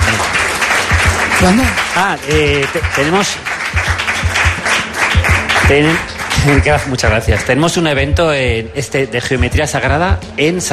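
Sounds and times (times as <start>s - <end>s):
audience applause: 0.0s - 7.7s
speech: 1.4s - 3.9s, 5.7s - 10.7s.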